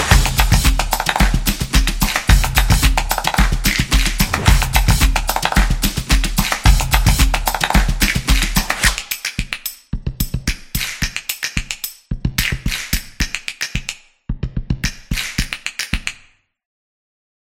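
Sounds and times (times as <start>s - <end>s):
upbeat urban music: 0.0s - 13.7s.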